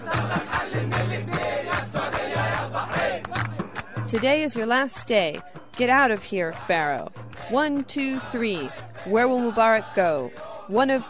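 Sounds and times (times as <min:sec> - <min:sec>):
crowd chanting: 0:00.0 - 0:04.2, 0:07.3 - 0:11.0
people clapping: 0:00.0 - 0:11.0
speech: 0:04.1 - 0:11.0.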